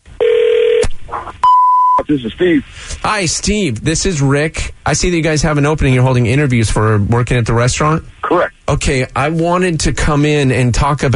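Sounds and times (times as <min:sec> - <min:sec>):
telephone tones at the start of a prank call: 0:00.2 - 0:02.1
speech: 0:02.1 - 0:11.1.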